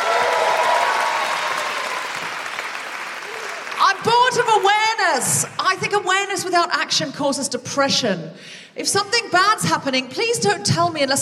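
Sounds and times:
audience applause: 0.0s - 5.0s
speech: 4.3s - 11.2s.

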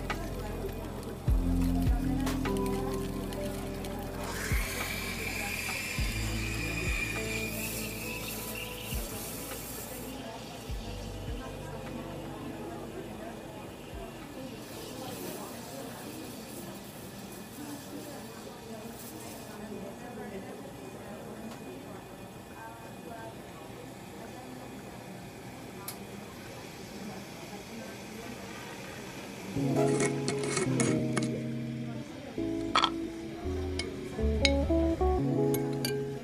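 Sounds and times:
murmur of overlapping voices in a coffee shop: 0.0s - 36.2s
hissing burst: 4.2s - 10.7s
cups and dishes clinking and clattering: 32.7s - 33.0s.

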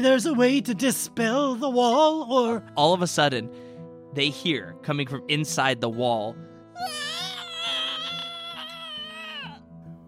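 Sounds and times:
speech: 0.0s - 7.0s
wolf screaming: 6.8s - 9.6s.

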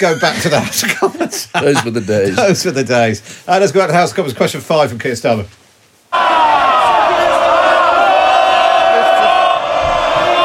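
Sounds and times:
laughter: 0.0s - 2.9s
speech: 0.0s - 6.2s
MPs cheering in the House of Commons: 6.1s - 10.4s.

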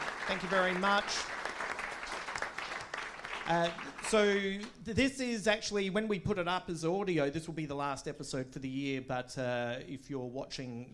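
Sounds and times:
audience applause at Giant Dwarf: 0.0s - 4.7s
speech: 0.3s - 1.4s, 3.5s - 10.9s.

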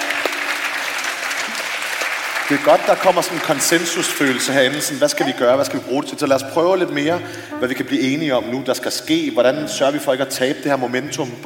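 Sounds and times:
audience applause: 0.0s - 5.0s
speech: 2.5s - 11.4s.

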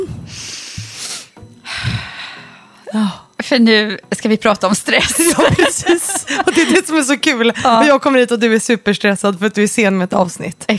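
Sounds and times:
deep breath: 0.0s - 3.4s
speech: 2.9s - 10.7s
laughter: 5.0s - 8.0s.

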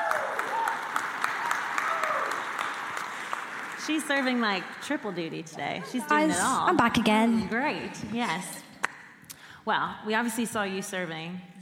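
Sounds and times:
applause: 0.0s - 4.9s
speech: 3.9s - 8.6s, 9.6s - 11.6s.

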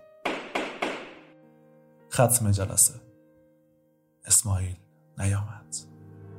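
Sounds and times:
gavel striking: 0.2s - 1.3s
speech: 2.2s - 3.1s, 4.3s - 5.9s.

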